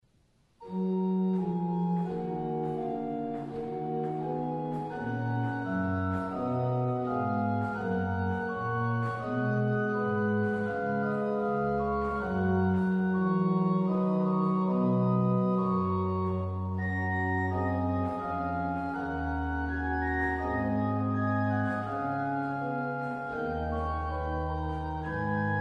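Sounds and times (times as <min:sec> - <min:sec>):
toccata in Dorian mode: 0:00.7 - 0:25.5.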